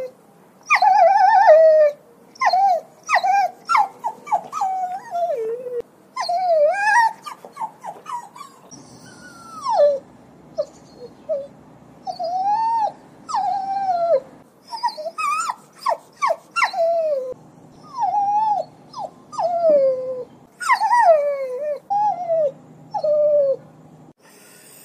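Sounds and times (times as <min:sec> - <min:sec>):
dog whining and yelping: 0:00.0 - 0:10.0, 0:10.6 - 0:23.6.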